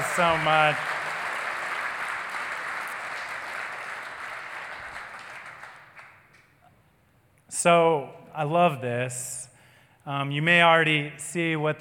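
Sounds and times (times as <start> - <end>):
audience clapping: 0.0 - 6.6
speech: 0.2 - 0.9, 7.5 - 9.4, 10.0 - 11.8.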